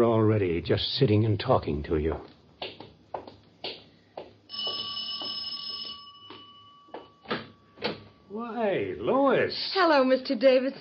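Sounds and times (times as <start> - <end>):
speech: 0.0 - 2.4, 9.4 - 10.7
doorbell ringing: 4.5 - 8.4.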